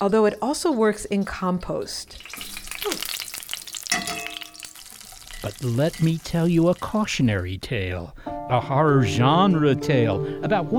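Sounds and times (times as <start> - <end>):
speech: 0.0 - 3.1, 5.4 - 10.7
grease frying in a pan: 2.1 - 7.6
metallic utensil clink: 3.9 - 6.2.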